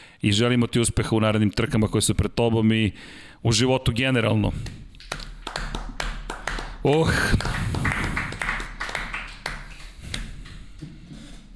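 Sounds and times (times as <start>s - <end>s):
speech: 0.2s - 4.9s, 6.8s - 7.7s
scattered applause in a conference hall: 5.1s - 10.3s.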